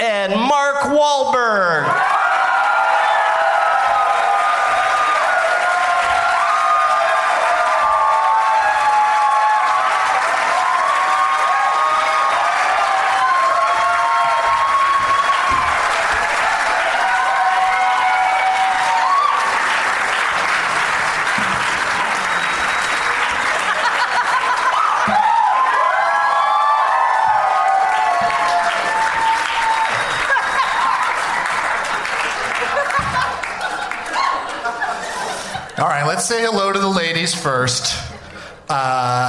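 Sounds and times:
speech: 0.2 - 2.1, 37.2 - 38.0
studio audience whoops and cheers: 1.9 - 19.8, 22.2 - 31.8, 34.1 - 34.5
talk-show studio audience applause: 1.9 - 36.7
studio audience laughter: 23.5 - 25.0, 30.2 - 31.2, 32.5 - 35.8.

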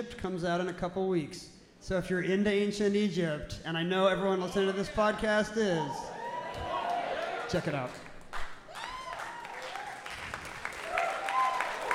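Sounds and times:
speech: 0.0 - 6.7, 7.5 - 8.0
scattered applause: 6.2 - 11.9.

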